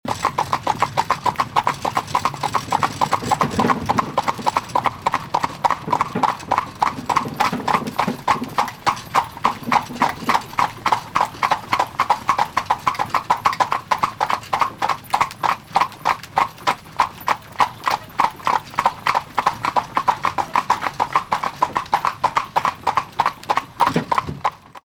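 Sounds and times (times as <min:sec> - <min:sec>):
horse carriage going fast: 0:00.0 - 0:24.8.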